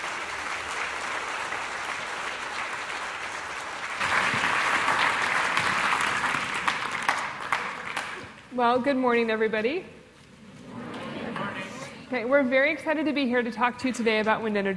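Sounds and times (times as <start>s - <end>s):
audience applauding to welcome two presenters at a science talk: 0.0s - 8.5s
speech: 8.6s - 10.0s, 12.1s - 14.7s.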